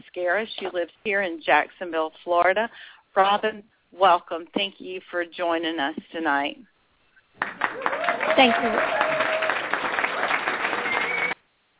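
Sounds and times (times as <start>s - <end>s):
speech: 0.2s - 6.7s, 7.4s - 9.0s
audience applause: 7.4s - 11.4s.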